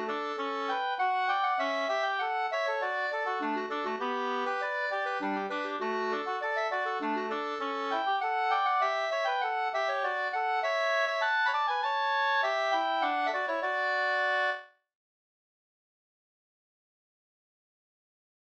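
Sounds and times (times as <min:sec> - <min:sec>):
two-part polska: 0:00.0 - 0:14.6.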